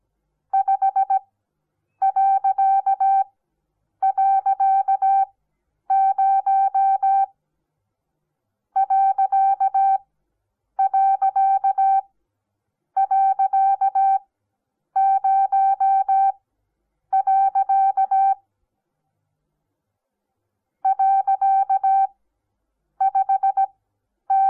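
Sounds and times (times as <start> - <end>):
morse code beeps: 0.6 - 1.2, 2.0 - 3.3, 4.0 - 5.3, 5.9 - 7.3, 8.8 - 10.0, 10.8 - 12.0, 13.0 - 14.2, 15.0 - 16.3, 17.2 - 18.4, 20.9 - 22.1, 23.0 - 23.7.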